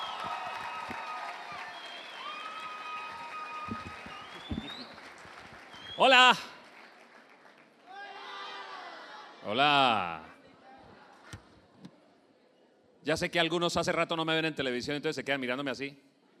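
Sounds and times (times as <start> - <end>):
audience applause and cheering: 0.0 - 8.9
speech: 3.7 - 4.1, 6.0 - 6.5, 9.5 - 10.3, 13.0 - 16.0.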